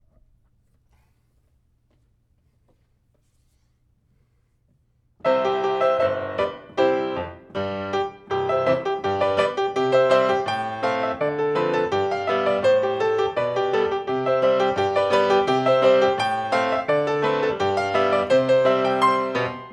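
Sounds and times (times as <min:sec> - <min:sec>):
polka music in C: 0:05.3 - 0:19.7.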